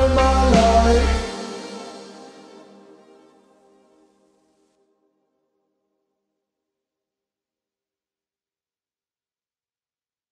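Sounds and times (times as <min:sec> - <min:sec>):
slowed reverb music: 0:00.0 - 0:03.8.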